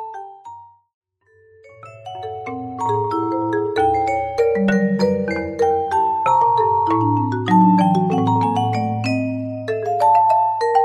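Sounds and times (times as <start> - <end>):
trio playing a passacaglia: 2.2 - 10.8.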